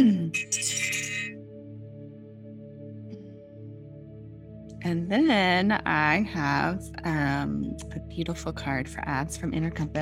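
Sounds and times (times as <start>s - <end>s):
bell being rung: 0.3s - 1.4s
speech: 4.8s - 9.9s.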